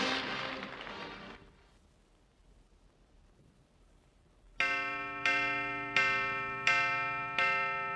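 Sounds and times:
clock chime: 4.6 - 7.9.

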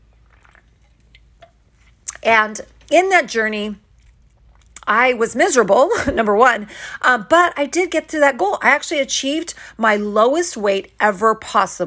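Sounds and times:
person drinking a sip of water: 0.0 - 2.2, 3.8 - 4.9
speech: 2.2 - 3.8, 4.9 - 11.8.

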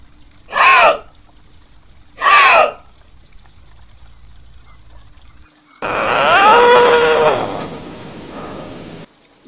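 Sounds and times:
Canadian lynx yowls, screams and moans: 0.5 - 1.1, 2.2 - 2.9, 5.8 - 8.0.

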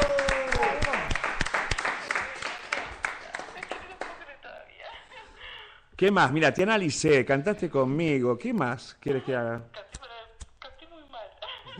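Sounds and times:
applause: 0.0 - 4.2
speech: 6.0 - 9.8.

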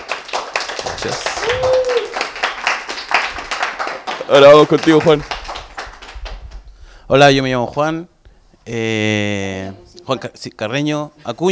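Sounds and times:
audience applause: 0.0 - 6.4
speech: 1.0 - 1.7, 4.2 - 5.4, 7.1 - 8.1, 8.7 - 11.5.

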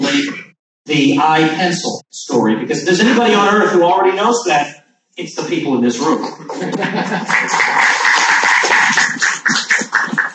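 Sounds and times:
speech: 0.2 - 7.9
laughter: 6.0 - 10.3
audience applause: 7.2 - 10.3.

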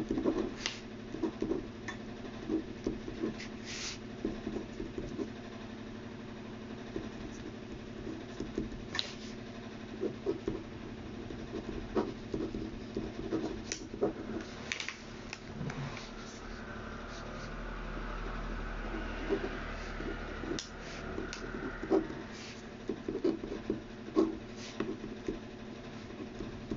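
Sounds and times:
scratching while copying out a text: 0.0 - 1.7, 2.4 - 5.4, 6.9 - 14.7, 19.2 - 26.7
steady low hum: 1.2 - 26.7.

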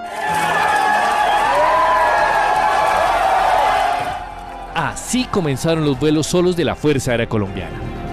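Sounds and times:
crowd cheering and shouting: 0.0 - 7.4
speech: 5.1 - 8.0.

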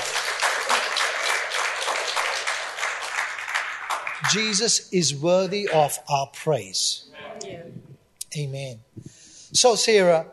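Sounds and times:
audience clapping: 0.0 - 4.7
speech: 4.3 - 7.1, 8.3 - 10.3.

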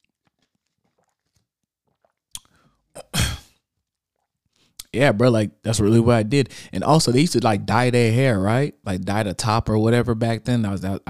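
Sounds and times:
person taking a swig of water: 0.0 - 4.9
speech: 4.9 - 11.0.

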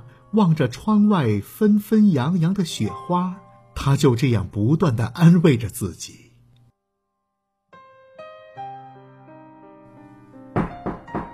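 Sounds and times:
speech: 0.3 - 6.2
knocking on a door: 10.6 - 11.3.

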